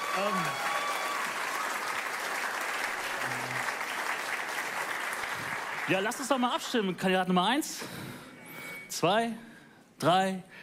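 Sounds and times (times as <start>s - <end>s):
audience applause: 0.0s - 6.7s
speech: 0.2s - 0.7s, 5.9s - 8.2s, 8.9s - 10.6s.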